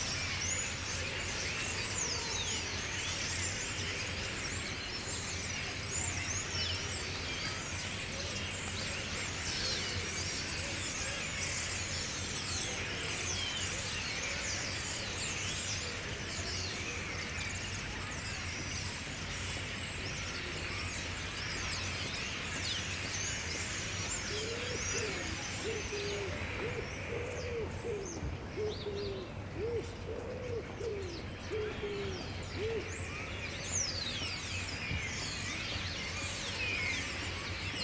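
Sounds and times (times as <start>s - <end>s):
flocks of birds in Paris: 0.0s - 37.8s.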